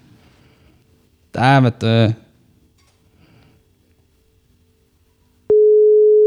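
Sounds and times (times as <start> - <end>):
speech: 1.4 - 2.2
outgoing phone call ringing tone: 5.5 - 6.2.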